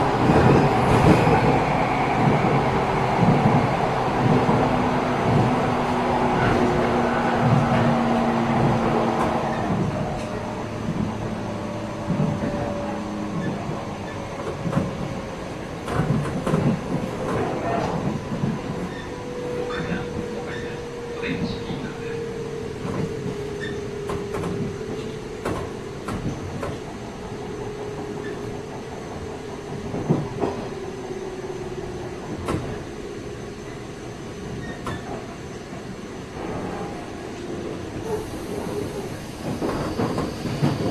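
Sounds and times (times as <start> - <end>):
special train: 0.0 - 40.9.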